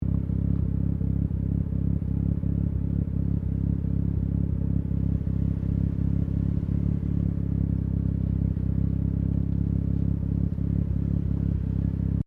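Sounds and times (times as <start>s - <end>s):
Mazda RX7 Series 3 exhaust idling: 0.0s - 12.2s.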